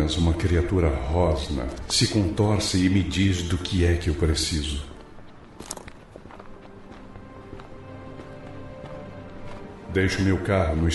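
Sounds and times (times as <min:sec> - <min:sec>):
footsteps on street: 0:00.0 - 0:10.9
speech: 0:00.1 - 0:04.9, 0:10.0 - 0:10.9.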